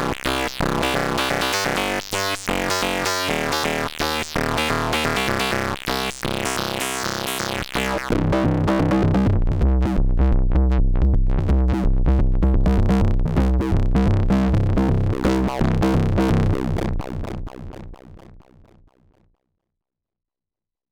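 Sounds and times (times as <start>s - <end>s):
bass synthesizer filter sweep: 0.0s - 19.0s.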